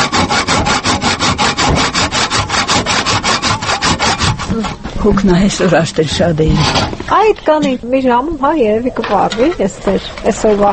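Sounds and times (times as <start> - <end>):
hand saw cutting wood branches gathered for stove fuel: 0.0 - 5.0, 6.4 - 7.0
speech: 5.0 - 10.7.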